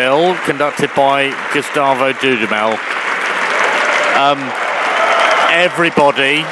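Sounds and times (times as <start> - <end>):
speech: 0.0 - 3.1, 4.2 - 4.6, 5.5 - 6.4
large concert audience applauding in a concert hall after a symphony: 0.0 - 6.4
cheers and shouts of bravo: 3.3 - 6.4.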